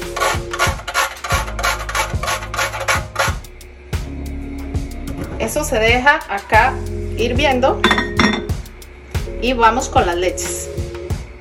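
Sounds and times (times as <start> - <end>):
grating nutmeg: 0.0 - 3.5
speech: 5.6 - 8.1, 9.4 - 10.7.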